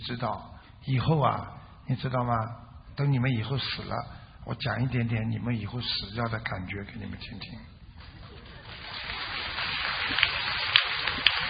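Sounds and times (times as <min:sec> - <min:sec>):
speech: 0:00.0 - 0:07.7, 0:10.1 - 0:10.3
audience applause: 0:08.0 - 0:11.4.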